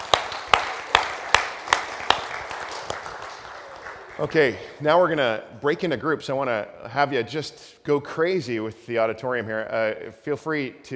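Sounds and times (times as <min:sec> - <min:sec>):
audience applauding: 0:00.0 - 0:04.8
speech: 0:04.2 - 0:10.9.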